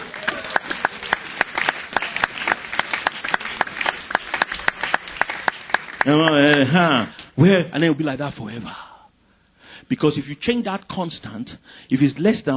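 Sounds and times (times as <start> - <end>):
audience clapping: 0.0 - 7.0
speech: 6.0 - 8.9, 9.9 - 12.5.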